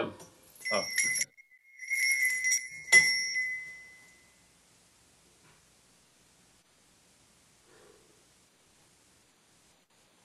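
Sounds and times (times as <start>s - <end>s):
speech: 0.0s - 1.1s
bell ringing: 0.6s - 4.4s.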